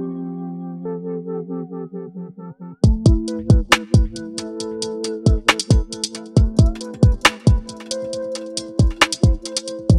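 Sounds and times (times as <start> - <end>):
chords and beat: 2.9 - 9.9.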